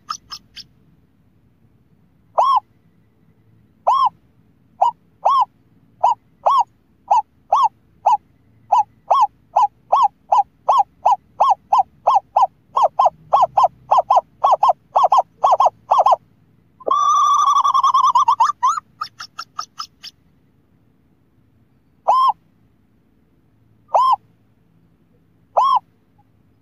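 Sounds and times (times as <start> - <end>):
scops owl hooting: 0.0 - 0.7, 2.3 - 2.8, 3.8 - 4.2, 4.8 - 16.2, 16.8 - 20.2, 22.0 - 22.4, 23.9 - 24.2, 25.5 - 26.3.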